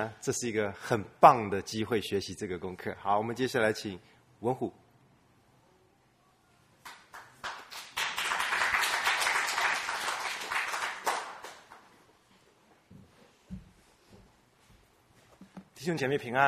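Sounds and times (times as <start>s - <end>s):
speech: 0.0s - 4.8s, 15.9s - 16.4s
church congregation clapping: 6.8s - 12.0s.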